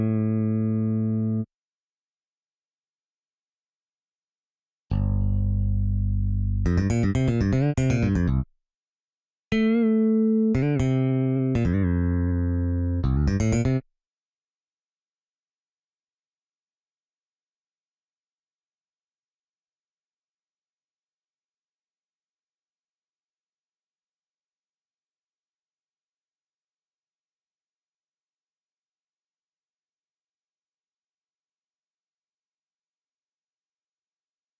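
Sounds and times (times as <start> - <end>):
fretless bass: 0.0 - 1.5, 4.9 - 8.5, 9.5 - 13.8.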